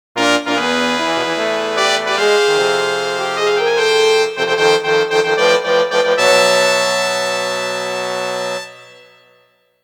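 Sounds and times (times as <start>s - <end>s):
fanfare: 0.2s - 9.4s.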